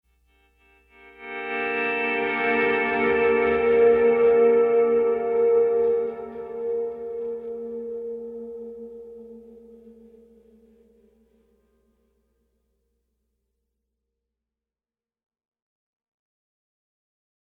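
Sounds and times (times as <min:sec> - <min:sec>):
pleasant guitar playing: 0:00.7 - 0:11.2.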